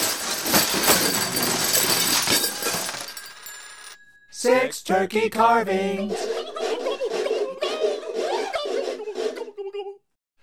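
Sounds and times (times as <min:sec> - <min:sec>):
closet's contents tumbling out and crashing: 0:00.0 - 0:04.0
glassy clinks: 0:00.0 - 0:04.4
speech: 0:04.4 - 0:06.3
laughter: 0:06.0 - 0:10.0.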